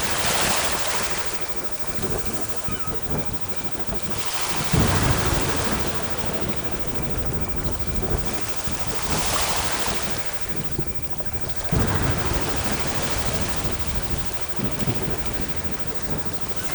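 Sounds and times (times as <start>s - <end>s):
coastal thunderstorm: 0.0s - 16.7s.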